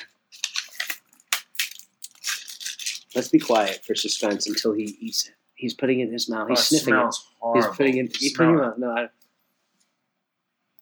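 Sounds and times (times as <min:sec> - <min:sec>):
spiced chili chocolate bar breaking: 0:00.3 - 0:04.5
speech: 0:03.1 - 0:09.2.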